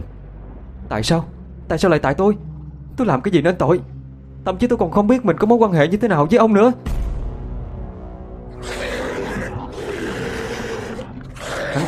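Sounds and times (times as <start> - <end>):
speech: 0.9 - 7.0
ghost's angry roar: 8.5 - 11.8.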